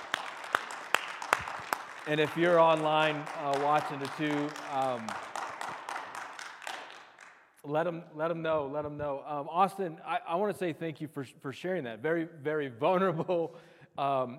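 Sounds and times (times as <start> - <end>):
audience applause: 0.0 - 7.4
speech: 2.1 - 5.3, 7.6 - 14.3.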